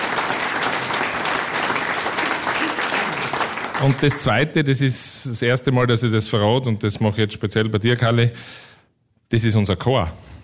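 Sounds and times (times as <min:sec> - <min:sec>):
applause: 0:00.0 - 0:04.6
speech: 0:03.8 - 0:08.7, 0:09.3 - 0:10.3.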